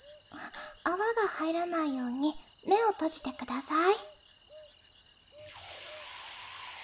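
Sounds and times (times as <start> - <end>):
speech: 0.9 - 4.1
hot water rinsing hair: 5.5 - 6.8.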